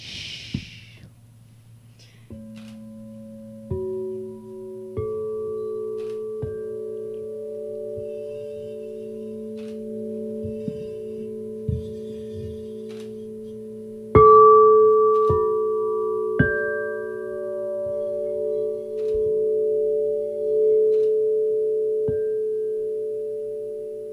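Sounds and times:
sound bath resonant tones: 0.0 - 24.1
soft strikes adding ringing pitches: 2.0 - 24.1.

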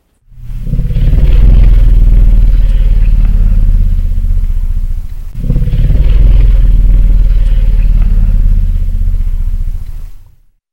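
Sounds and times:
elephant rumble: 0.2 - 10.5.

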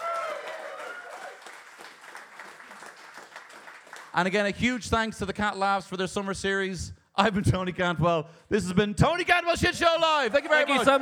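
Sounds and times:
audience applause: 0.0 - 4.5
speech: 4.2 - 11.0.

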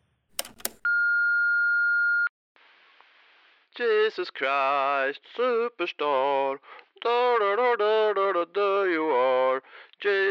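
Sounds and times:
answering machine beep when playing back messages: 0.4 - 1.2
speech: 3.8 - 10.3.

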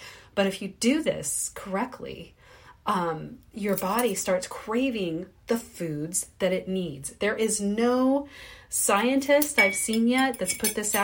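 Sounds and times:
speech: 0.4 - 11.0
tablespoon measuring cup clinking against a drinking glass: 9.4 - 11.0.

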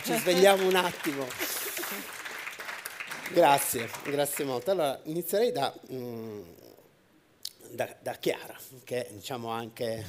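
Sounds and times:
audience applause: 0.0 - 4.7
speech: 0.1 - 2.1, 3.3 - 6.6, 7.7 - 10.0.

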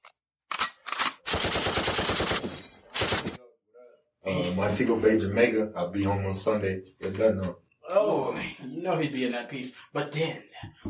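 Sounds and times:
machine guns firing: 1.3 - 3.4
speech: 4.2 - 10.8.

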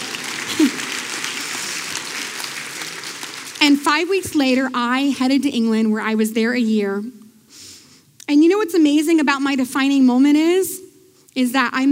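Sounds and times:
audience clapping: 0.0 - 4.2
speech: 3.6 - 7.2, 8.3 - 10.8, 11.4 - 11.9.

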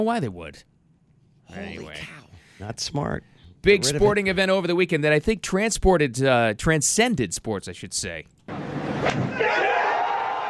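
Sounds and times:
speech: 0.0 - 0.7, 1.5 - 9.6
large sports crowd cheering: 9.0 - 10.4.

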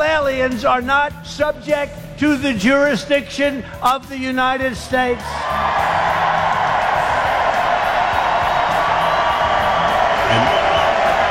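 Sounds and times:
speech: 0.3 - 6.0
large crowd cheering at a rally: 5.1 - 11.2.

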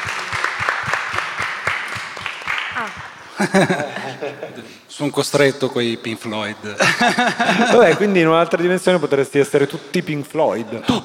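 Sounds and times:
audience applause: 0.0 - 3.8
laughter: 2.8 - 4.8, 6.7 - 8.3, 10.6 - 11.0
speech: 2.8 - 11.0.

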